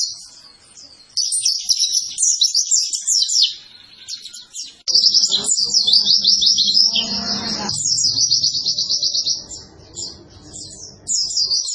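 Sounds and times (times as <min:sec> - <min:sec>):
white-eye twittering song: 0:00.0 - 0:11.7
low noisy sound: 0:04.9 - 0:11.7.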